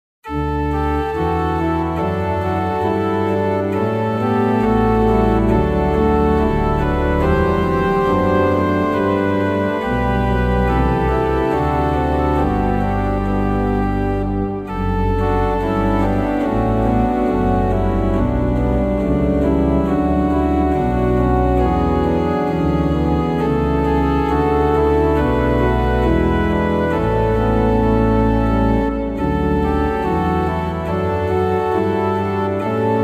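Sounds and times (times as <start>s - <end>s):
organ: 0.3s - 33.0s.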